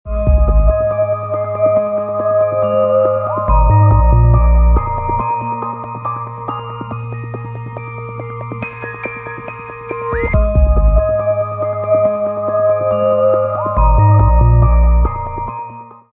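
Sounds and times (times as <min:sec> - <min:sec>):
music ringtone: 0:00.1 - 0:16.1.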